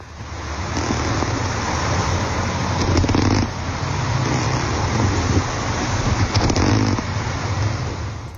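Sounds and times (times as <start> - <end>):
corkwing wrasse rough rumbling grunts underwater: 0.6 - 7.2.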